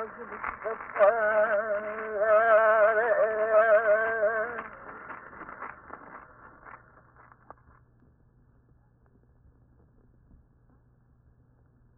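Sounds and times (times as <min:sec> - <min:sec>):
Hawaiian place-name chant: 0:00.0 - 0:05.3.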